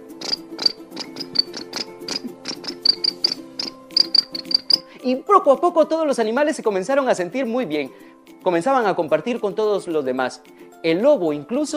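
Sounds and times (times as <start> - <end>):
crickets chirping: 0.1 - 4.9
speech: 5.0 - 11.7.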